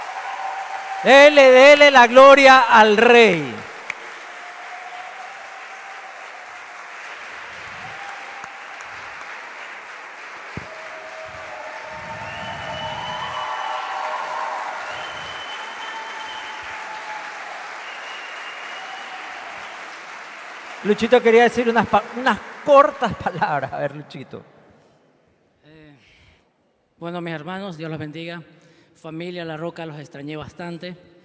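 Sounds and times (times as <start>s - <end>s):
audience applause and cheering: 0.0s - 23.8s
speech: 1.0s - 3.7s, 20.9s - 24.6s, 27.0s - 31.1s.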